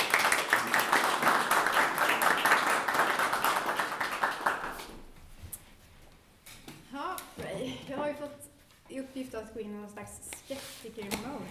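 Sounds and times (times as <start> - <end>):
warm audience applause: 0.0 - 5.0
speech: 9.1 - 11.4.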